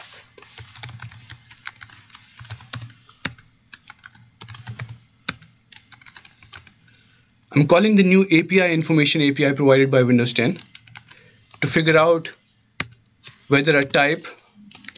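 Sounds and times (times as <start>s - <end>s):
typing C++ code on a computer keyboard: 0.0s - 7.0s, 10.6s - 14.9s
speech: 7.6s - 10.7s, 11.7s - 12.4s, 13.5s - 14.4s.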